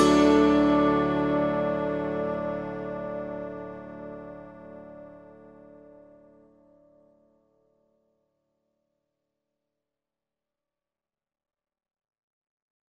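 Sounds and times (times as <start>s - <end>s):
harp: 0.0s - 5.2s.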